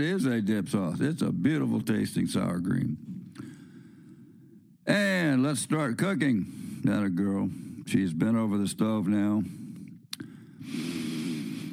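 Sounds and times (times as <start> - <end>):
speech: 0.0 - 3.1, 4.8 - 9.6
person sniffing a food aroma: 10.2 - 11.7.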